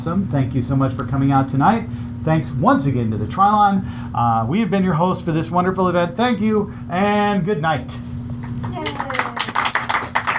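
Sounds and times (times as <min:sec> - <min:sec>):
speech: 0:00.0 - 0:08.1
audience applause: 0:08.6 - 0:10.3.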